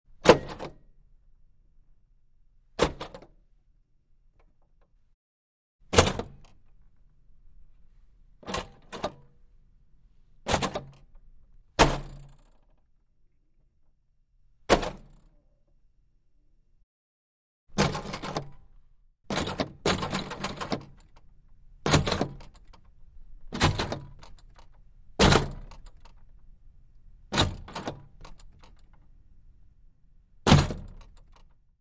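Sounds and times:
wooden door push rail: 0.2s - 0.9s, 2.8s - 3.4s, 5.9s - 6.8s, 8.4s - 9.3s, 10.5s - 11.1s, 11.8s - 12.7s, 14.7s - 15.3s, 17.8s - 18.7s, 19.3s - 21.2s, 21.8s - 22.9s, 23.5s - 26.2s, 27.3s - 29.0s, 30.5s - 31.6s.

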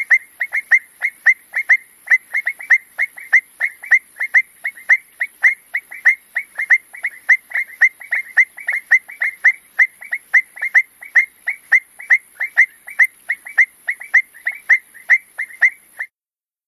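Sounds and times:
frogs chirping: 0.0s - 16.1s.

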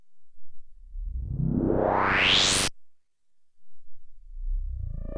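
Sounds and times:
sci-fi spaceship control interface: 0.9s - 2.7s, 4.3s - 5.1s.

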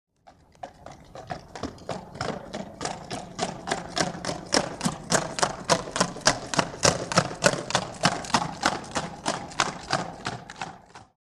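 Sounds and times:
horse trotting past: 0.2s - 11.2s.

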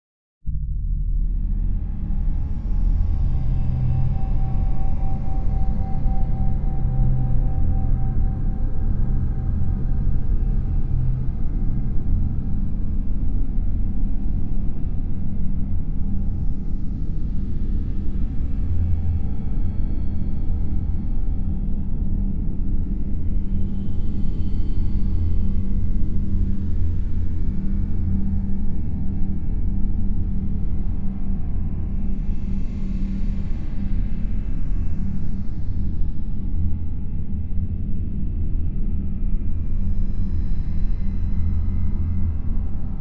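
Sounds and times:
cold dank drone bed: 0.5s - 42.9s.

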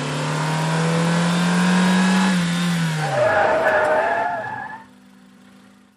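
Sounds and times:
compact small car revving and skidding through 180 degrees: 0.2s - 5.0s.

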